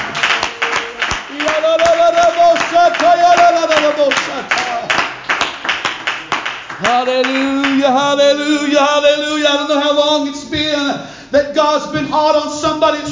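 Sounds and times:
audience clapping hands: 0:00.0 - 0:08.6
speech: 0:06.9 - 0:13.1.

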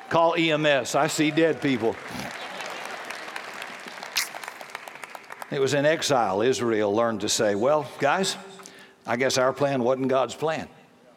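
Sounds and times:
crowd applauding: 0:00.0 - 0:06.1
speech: 0:00.1 - 0:02.4, 0:05.5 - 0:10.8.

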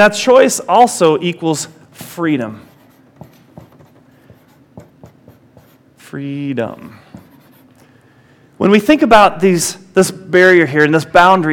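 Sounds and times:
speech: 0:00.0 - 0:02.7, 0:06.1 - 0:07.0, 0:08.6 - 0:11.5
word being written on a board: 0:02.6 - 0:05.9, 0:06.8 - 0:07.7.

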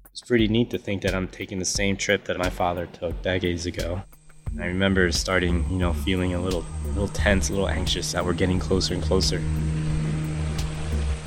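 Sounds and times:
speech: 0:00.2 - 0:10.0
boat motor revving: 0:04.0 - 0:11.2.

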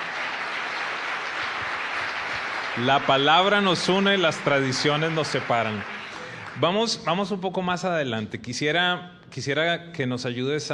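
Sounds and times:
audience applause: 0:00.0 - 0:07.1
speech: 0:02.8 - 0:06.0, 0:06.6 - 0:10.7.

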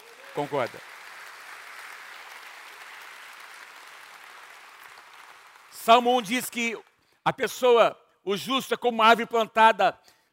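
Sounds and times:
audience applause: 0:00.0 - 0:06.1
speech: 0:00.4 - 0:00.9, 0:05.8 - 0:10.2.

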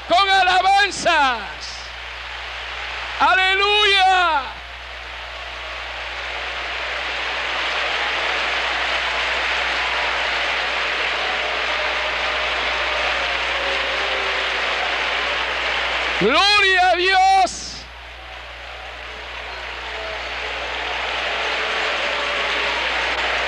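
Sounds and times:
audience applause: 0:00.0 - 0:23.4
speech: 0:03.2 - 0:04.5, 0:16.2 - 0:17.3.

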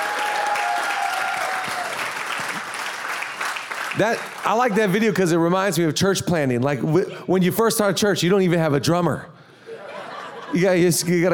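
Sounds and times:
audience clapping: 0:00.0 - 0:05.1
speech: 0:04.0 - 0:09.3, 0:10.5 - 0:11.3
laughter: 0:09.7 - 0:11.1.

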